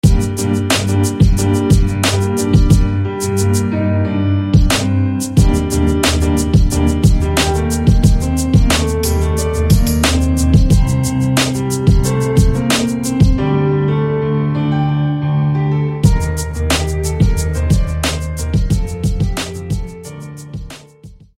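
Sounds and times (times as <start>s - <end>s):
piano: 0.0s - 21.3s.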